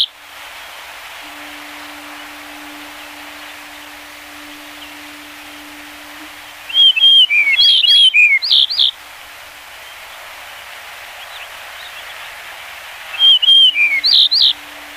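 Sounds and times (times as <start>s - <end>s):
yellow-breasted bunting singing whistled and slurred notes: 1.2s - 9.0s, 13.1s - 14.9s.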